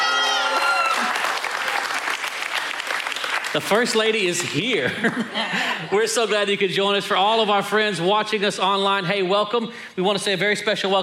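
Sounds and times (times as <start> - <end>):
church audience applause: 0.0 - 4.6
speech: 3.6 - 11.0
laughter: 4.7 - 6.4.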